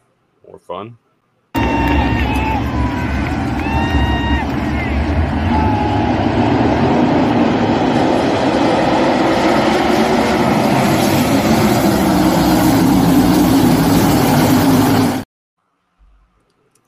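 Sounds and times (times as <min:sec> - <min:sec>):
speech: 0:00.6 - 0:01.0
race car engines at a local dirt racetrack: 0:01.6 - 0:15.0.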